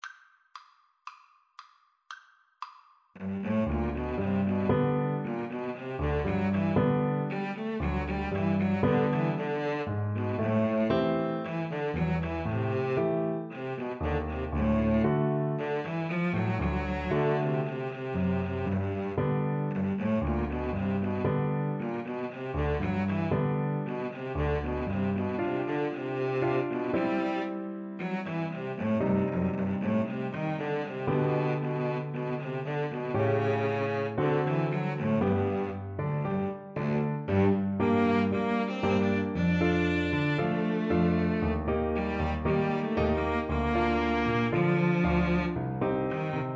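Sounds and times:
cello: 3.2 - 46.5
violin: 3.2 - 46.5.

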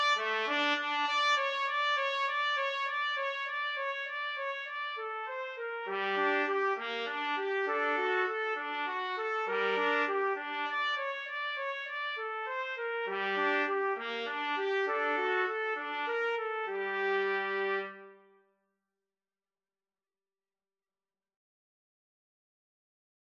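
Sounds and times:
trumpet duet: 0.0 - 18.4.

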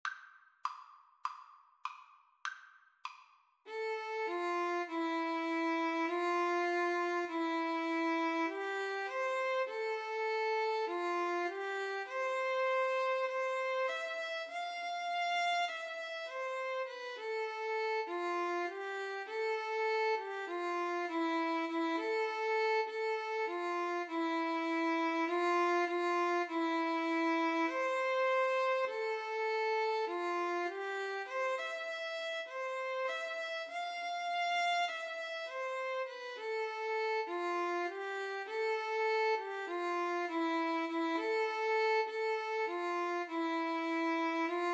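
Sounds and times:
violin in a violin and flute duet: 3.7 - 44.7.

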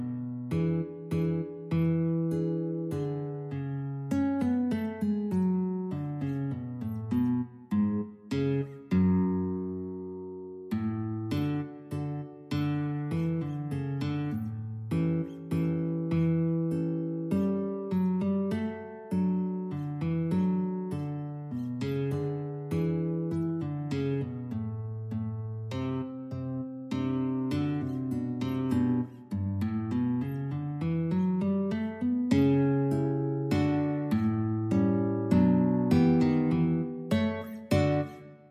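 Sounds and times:
guitar duet: 0.0 - 38.4.

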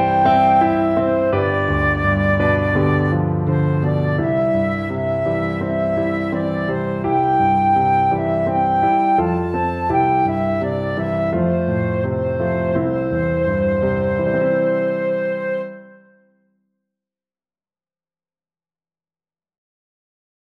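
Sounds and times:
flute tune: 0.0 - 16.2.

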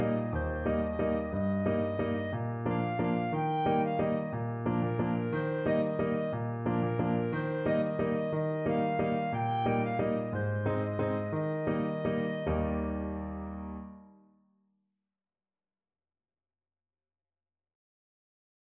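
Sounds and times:
clarinet: 0.0 - 13.8.

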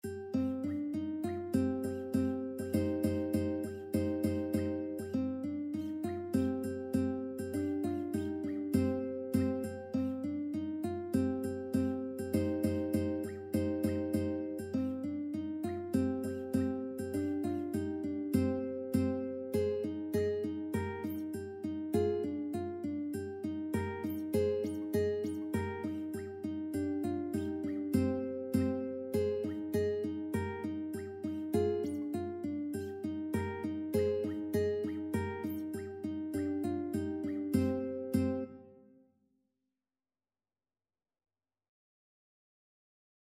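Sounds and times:
ukulele: 0.0 - 38.8.

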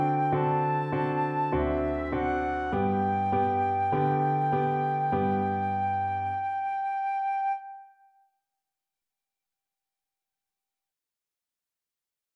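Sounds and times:
flute melody: 0.0 - 8.2.

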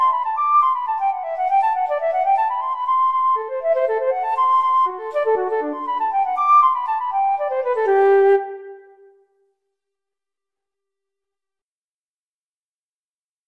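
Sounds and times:
flute playing a gigue: 0.0 - 9.1.

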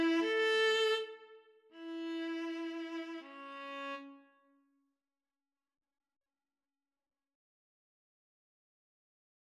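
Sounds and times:
violin in a violin and viola duet: 0.0 - 4.4.

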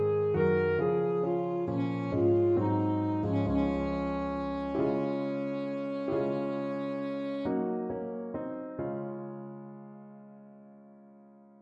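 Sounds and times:
saxophone: 0.0 - 8.1.

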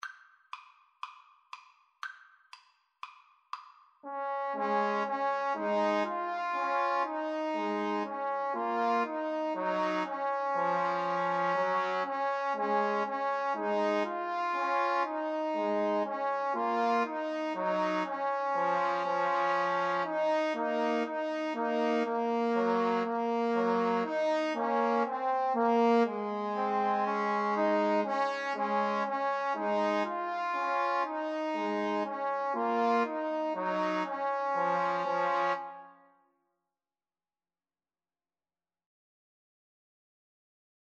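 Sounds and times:
trombone trio: 4.1 - 35.7.

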